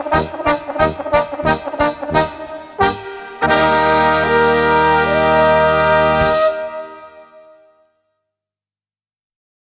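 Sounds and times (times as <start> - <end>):
polka music: 0.0 - 7.6.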